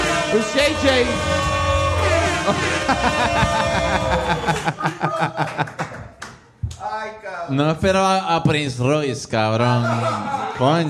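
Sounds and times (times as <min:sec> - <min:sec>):
speech: 0:00.3 - 0:01.6, 0:02.4 - 0:05.8, 0:07.1 - 0:10.8
applause: 0:01.9 - 0:06.4
laughter: 0:02.0 - 0:06.2, 0:09.6 - 0:10.8.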